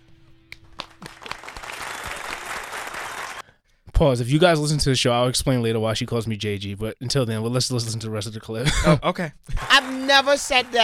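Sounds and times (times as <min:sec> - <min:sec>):
full applause: 0:00.6 - 0:03.5, 0:09.5 - 0:10.8
speech: 0:04.0 - 0:10.8.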